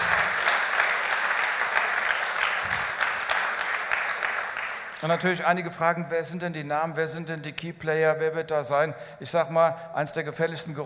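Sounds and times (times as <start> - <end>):
audience applause: 0.0 - 5.0
speech: 5.0 - 10.8.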